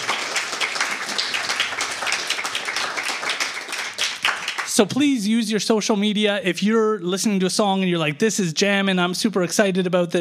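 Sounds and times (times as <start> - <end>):
crowd applauding: 0.0 - 5.0
speech: 4.8 - 10.1.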